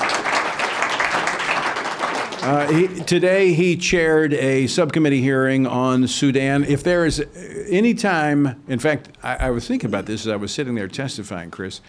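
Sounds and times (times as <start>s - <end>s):
crowd applauding: 0.0s - 3.3s
speech: 2.4s - 11.8s.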